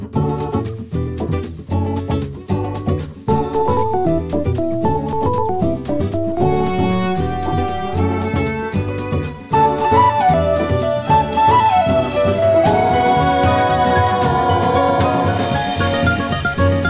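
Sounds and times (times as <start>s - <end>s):
happy 1970s jazz: 0.2s - 16.8s.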